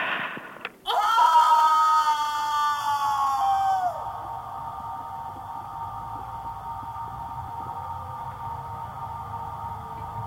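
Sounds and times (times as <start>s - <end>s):
short breathy intake: 0.0s - 0.6s
person imitating a scream: 0.8s - 4.2s.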